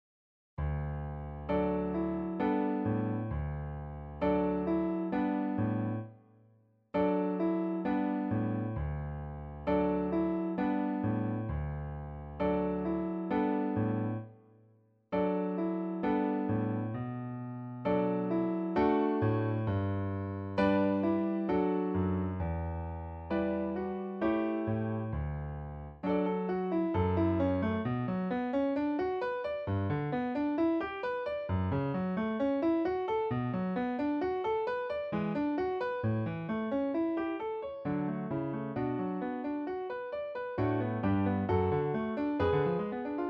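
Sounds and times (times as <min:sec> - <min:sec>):
piano: 0:00.6 - 0:43.2.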